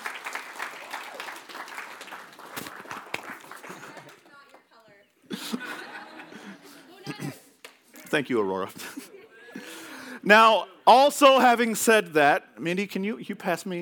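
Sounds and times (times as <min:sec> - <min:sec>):
audience applause: 0:00.0 - 0:04.6
speech: 0:08.1 - 0:09.0, 0:10.2 - 0:13.7.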